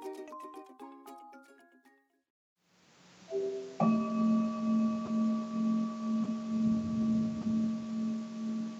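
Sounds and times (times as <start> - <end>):
computer mindfulness bell chime: 3.3 - 8.6.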